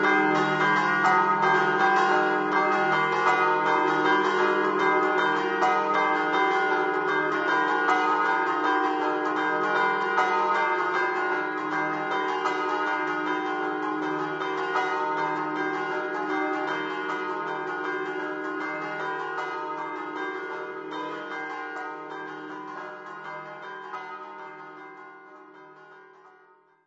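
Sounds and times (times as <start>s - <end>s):
church bells ringing in Cerneglons: 0.0s - 26.7s.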